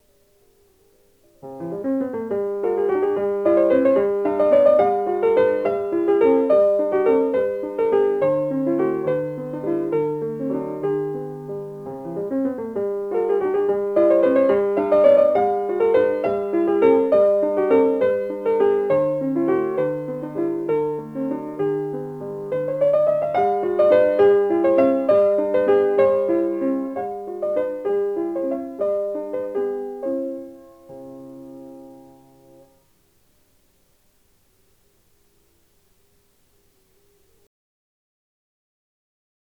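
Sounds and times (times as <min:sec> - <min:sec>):
waltz music: 0:01.4 - 0:32.7.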